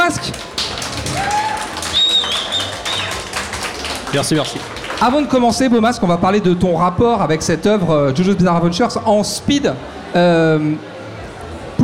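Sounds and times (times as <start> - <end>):
murmur of voices: 0.0 - 11.8
audience applause for the speaker: 0.1 - 5.6
shrill whistles: 1.8 - 3.2
speech: 4.1 - 11.0.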